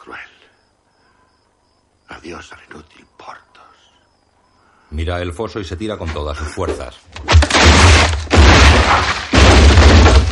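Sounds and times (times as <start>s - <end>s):
speech: 2.2s - 3.4s, 4.9s - 7.7s
heavy booming impacts of a collapsing stable: 7.3s - 10.2s
rumbling roar of falling debris from a collapsing stable: 7.3s - 10.2s.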